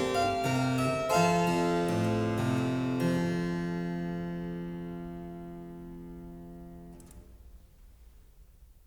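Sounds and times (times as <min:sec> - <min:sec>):
allemande piece in F major: 0:00.0 - 0:06.9.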